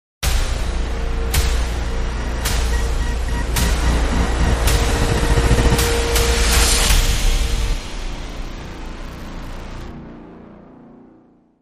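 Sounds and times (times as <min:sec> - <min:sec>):
dramatic sting without orchestra: 0:00.4 - 0:08.9.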